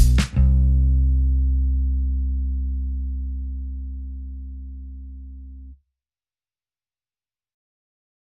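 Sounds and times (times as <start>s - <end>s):
drums: 0.0s - 0.6s
bass: 0.0s - 5.8s.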